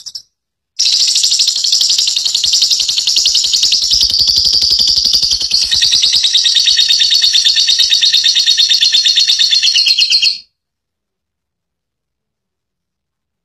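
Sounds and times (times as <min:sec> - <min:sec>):
lovebird long chattering call: 0:00.8 - 0:10.4.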